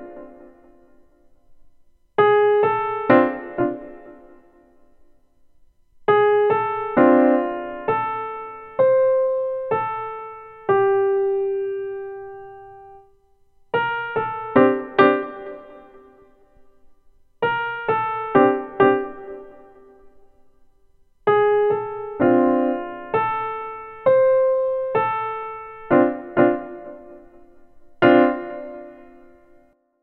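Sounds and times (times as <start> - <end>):
boogie duet music: 2.2 - 4.5, 6.1 - 12.9, 13.7 - 16.1, 17.4 - 19.8, 21.3 - 29.5.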